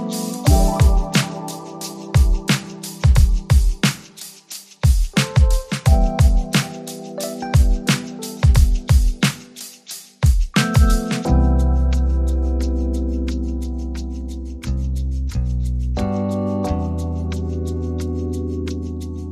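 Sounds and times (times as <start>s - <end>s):
drums: 0.0s - 11.9s
keyboard: 0.0s - 19.3s
bass: 11.2s - 19.3s.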